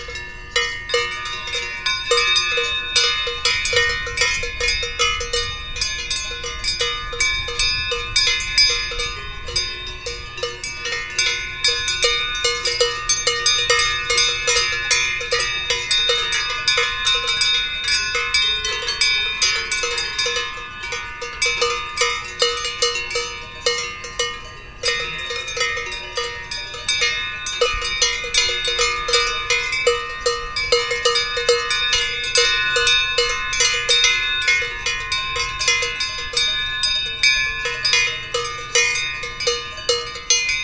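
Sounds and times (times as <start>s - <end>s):
bells ringing: 0.0s - 40.6s.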